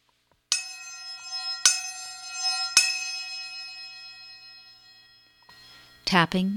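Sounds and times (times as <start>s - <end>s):
small brass chapa cymbals ringing: 0.5s - 5.9s.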